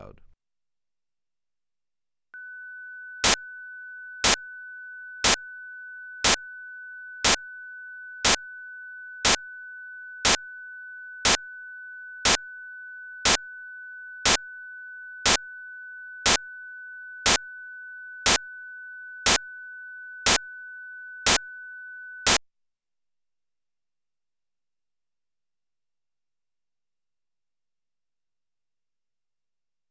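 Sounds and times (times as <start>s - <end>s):
loudness calibration pattern for playback volume: 2.3s - 22.4s.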